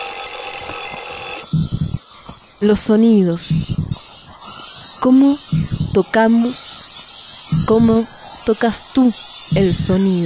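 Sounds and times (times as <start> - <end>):
high-pitched telephone ringing: 0.0 - 1.9
speech: 2.6 - 3.8, 5.0 - 6.9, 7.6 - 10.2.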